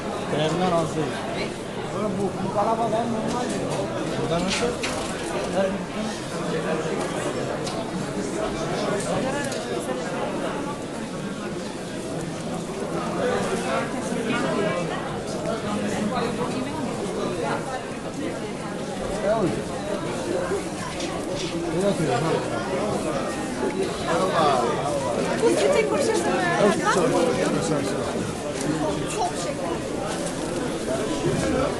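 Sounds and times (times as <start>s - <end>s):
crowd voices in a spice market interior in Istanbul: 0.0s - 31.7s.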